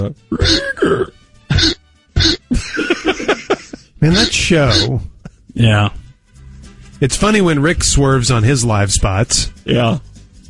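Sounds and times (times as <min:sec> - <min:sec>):
speech: 0:00.0 - 0:01.8, 0:04.0 - 0:06.0, 0:07.0 - 0:10.1
loud squeaky hiccups: 0:00.0 - 0:02.5, 0:04.1 - 0:05.1
laughter: 0:02.5 - 0:05.5.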